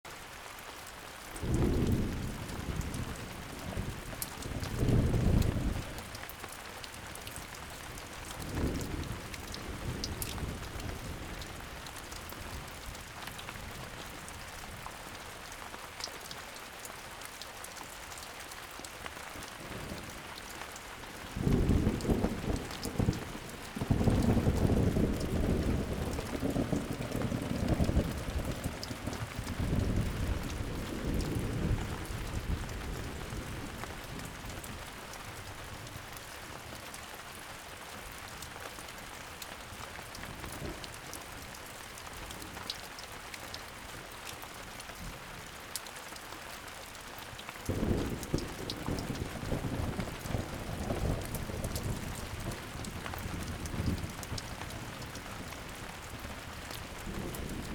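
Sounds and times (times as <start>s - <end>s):
thunderstorm: 1.4s - 6.2s, 7.9s - 14.0s, 21.1s - 36.0s, 47.7s - 57.7s.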